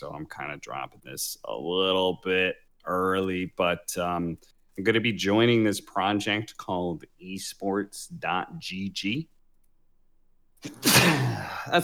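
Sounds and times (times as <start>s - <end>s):
speech: 0.0s - 9.4s, 10.6s - 11.8s
sneeze: 10.6s - 11.7s.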